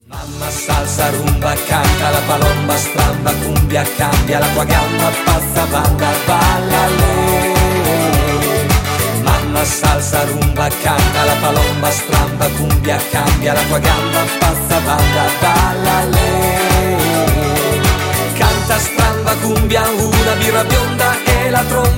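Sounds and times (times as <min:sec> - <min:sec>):
cumbia music: 0:00.0 - 0:21.9.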